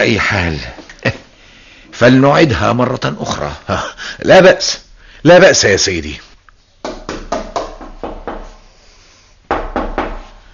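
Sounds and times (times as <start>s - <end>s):
speech: 0.0s - 1.2s, 2.0s - 6.3s
knocking on a door: 6.8s - 8.6s, 9.5s - 10.3s.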